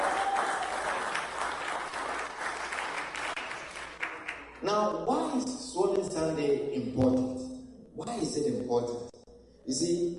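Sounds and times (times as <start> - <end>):
audience clapping: 0.0 - 4.6
speech: 4.6 - 7.4, 8.0 - 9.1, 9.7 - 10.1.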